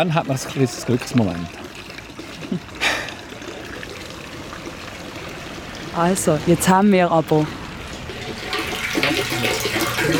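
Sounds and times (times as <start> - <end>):
speech: 0.0 - 1.7, 2.5 - 2.7, 6.0 - 7.6
water splashing in a fountain: 0.0 - 10.1.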